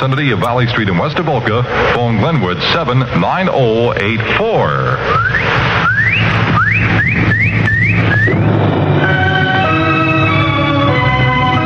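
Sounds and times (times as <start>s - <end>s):
speech: 0.0s - 6.3s, 8.1s - 8.8s
whistle blowing: 5.1s - 8.4s, 9.0s - 10.6s.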